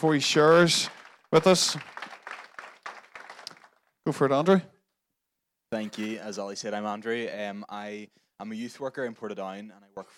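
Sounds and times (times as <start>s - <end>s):
speech: 0.0s - 2.0s, 4.1s - 4.7s, 5.7s - 10.1s
audience applause: 0.4s - 3.8s.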